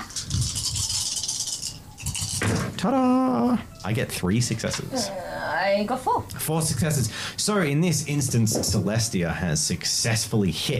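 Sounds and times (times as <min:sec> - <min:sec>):
dice being shaken and rolled: 0:00.0 - 0:02.6
speech: 0:02.8 - 0:10.7.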